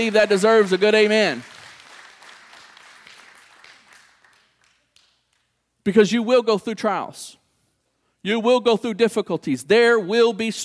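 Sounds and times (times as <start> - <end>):
speech: 0.0 - 1.5, 5.8 - 7.4, 8.2 - 10.6
audience clapping hands in praise: 0.0 - 5.6.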